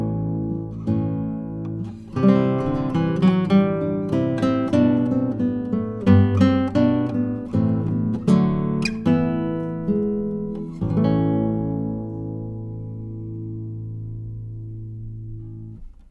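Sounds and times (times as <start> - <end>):
pavan played on a Bartolex SRC7 guitar: 0.0 - 16.0.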